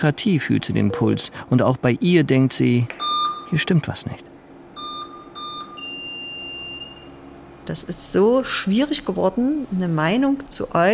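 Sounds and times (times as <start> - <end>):
speech: 0.0 - 4.3, 7.7 - 10.9
low hum: 0.0 - 10.9
electronic patient monitor beeping in an operating room: 0.7 - 1.6, 3.0 - 3.7, 4.7 - 7.3.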